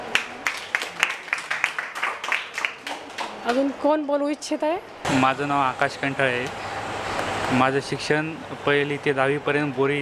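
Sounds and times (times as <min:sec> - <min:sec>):
audience applause at a nursing college student gathering: 0:00.0 - 0:03.7
speech: 0:03.4 - 0:06.7, 0:07.5 - 0:10.0.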